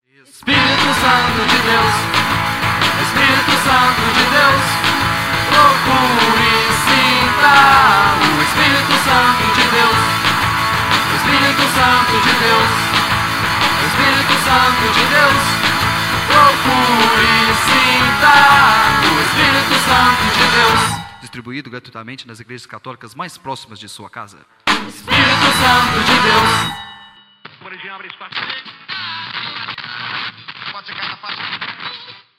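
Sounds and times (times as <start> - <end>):
commercial break jingle: 0.4 - 21.5, 24.7 - 27.3.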